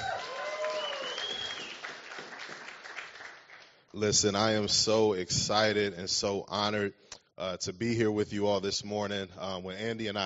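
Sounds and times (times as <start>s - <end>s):
whoops or whistles: 0.0s - 1.9s
audience applause: 0.0s - 3.7s
speech: 3.9s - 10.2s.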